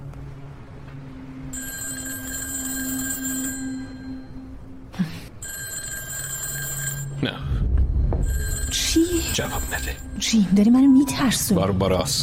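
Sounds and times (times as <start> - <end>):
telephone ringing with a high electronic trill: 1.5 - 4.5, 5.4 - 7.2, 8.2 - 10.6
speech: 9.4 - 12.2.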